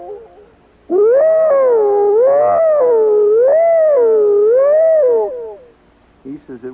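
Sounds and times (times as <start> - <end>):
man hollering to imitate a fire siren: 1.0 - 5.6.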